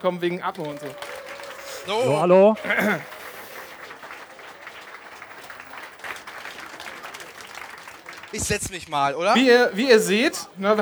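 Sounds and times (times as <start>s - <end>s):
speech: 0.0s - 3.2s, 8.3s - 10.8s
laughter: 0.0s - 8.6s, 9.3s - 10.8s
audience clapping: 0.0s - 10.8s.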